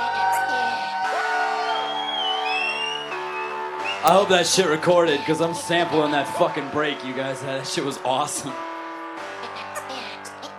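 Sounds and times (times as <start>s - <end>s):
audience cheering and applauding the band: 0.0s - 4.0s
speech: 4.0s - 8.6s.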